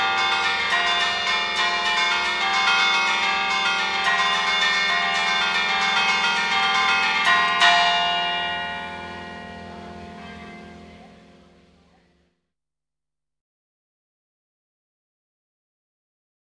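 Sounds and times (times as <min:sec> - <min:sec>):
bells ringing: 0:00.0 - 0:12.2.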